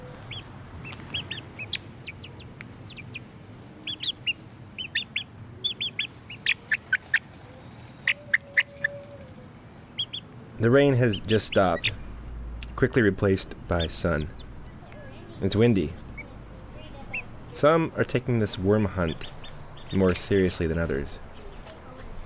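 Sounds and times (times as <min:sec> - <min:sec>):
chicken chicks peeping: 0:00.0 - 0:07.4, 0:08.0 - 0:09.1, 0:09.9 - 0:22.2
speech: 0:10.6 - 0:12.0, 0:12.8 - 0:14.4, 0:15.4 - 0:16.0, 0:17.6 - 0:21.2.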